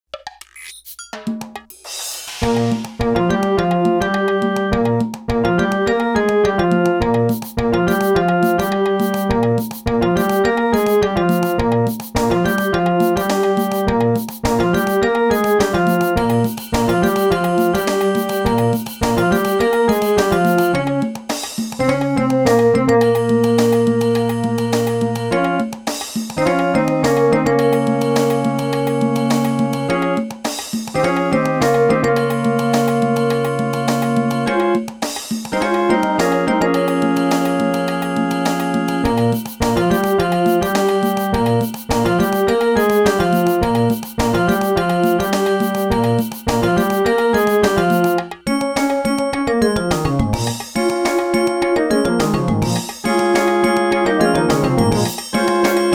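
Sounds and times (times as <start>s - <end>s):
synth melody: 2.4s - 21.1s, 21.8s - 25.8s, 26.4s - 30.3s, 31.0s - 34.9s, 35.5s - 55.9s.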